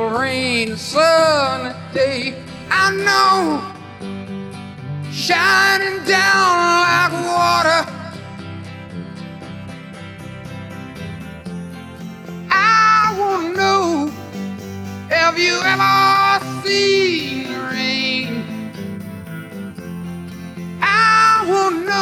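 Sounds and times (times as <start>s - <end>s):
person singing: 0.0s - 4.0s, 5.1s - 8.3s, 12.4s - 19.0s, 20.8s - 22.0s
guitar: 0.0s - 22.0s.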